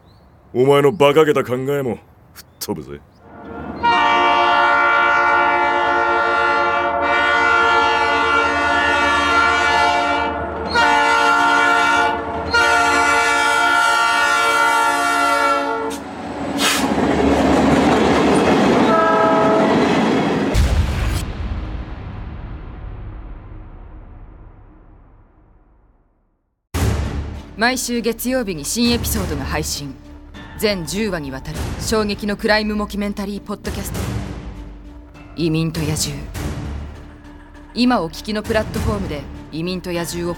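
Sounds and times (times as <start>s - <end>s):
speech: 0.5s - 3.1s, 27.6s - 30.0s, 30.6s - 34.1s, 35.4s - 36.5s, 37.8s - 40.3s
freight train rolling by with heavy rumble and clatter: 3.2s - 22.1s, 26.8s - 40.3s
freight train horn blasts: 3.4s - 16.9s, 18.8s - 19.9s.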